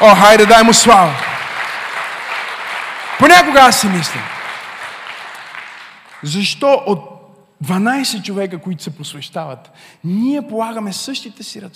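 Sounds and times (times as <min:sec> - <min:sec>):
speech: 0:00.0 - 0:01.3, 0:03.2 - 0:04.4, 0:06.2 - 0:11.7
audience applauding: 0:00.0 - 0:06.4.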